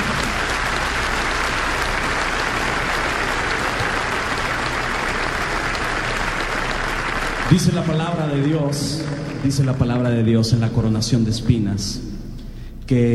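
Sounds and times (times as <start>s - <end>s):
audience applause: 0.0s - 10.3s
speech: 7.5s - 12.1s, 12.9s - 13.1s.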